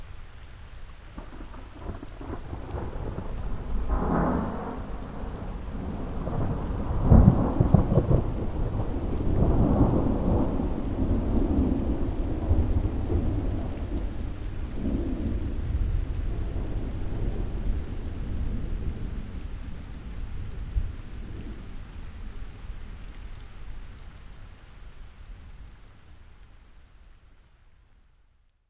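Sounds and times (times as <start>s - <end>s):
summer thunderstorm: 1.1s - 22.8s.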